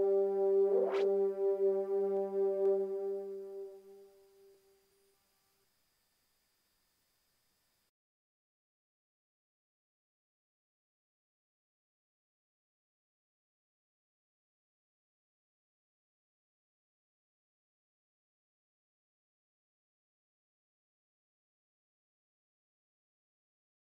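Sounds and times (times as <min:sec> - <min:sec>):
1980s music: 0:00.0 - 0:04.6.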